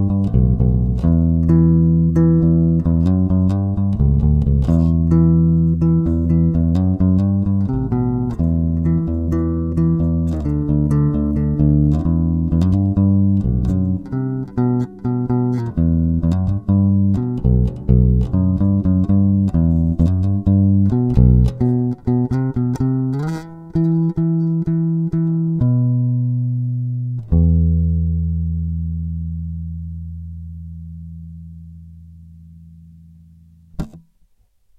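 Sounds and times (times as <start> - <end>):
bass guitar sample with half EQ: 0.0 - 34.3.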